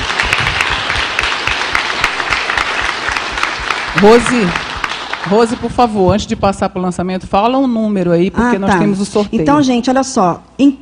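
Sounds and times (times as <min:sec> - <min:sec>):
audience applause: 0:00.0 - 0:05.8
speech: 0:04.0 - 0:04.6, 0:05.2 - 0:10.8.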